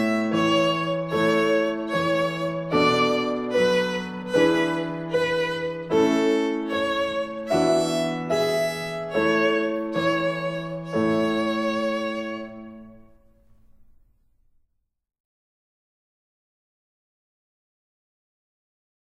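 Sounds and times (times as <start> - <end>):
slow practice-tempo music: 0.0 - 14.6.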